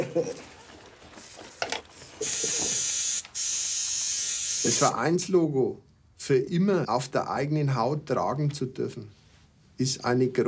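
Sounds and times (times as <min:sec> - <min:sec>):
speech: 0:00.2 - 0:00.5, 0:04.6 - 0:09.2, 0:09.8 - 0:10.4
tattoo machine running: 0:02.2 - 0:05.0.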